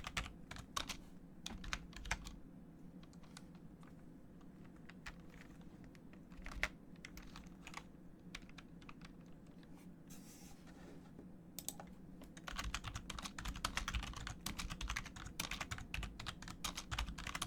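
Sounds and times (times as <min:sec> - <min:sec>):
keyboard typing: 0:00.0 - 0:02.4, 0:03.0 - 0:09.4, 0:11.6 - 0:17.4
brief softer rustle: 0:09.6 - 0:11.2.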